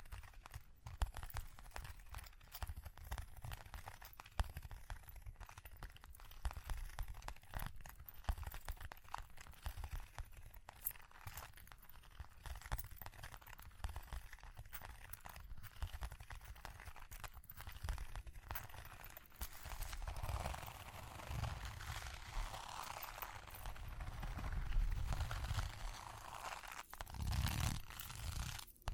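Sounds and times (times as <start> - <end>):
tapping and scratching: 0.0 - 28.9
soft low rumble: 19.8 - 26.3.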